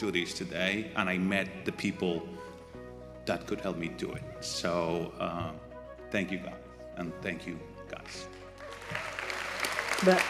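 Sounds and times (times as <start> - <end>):
speech: 0.0 - 2.5, 3.2 - 9.1, 10.0 - 10.2
audience applause: 8.6 - 10.2.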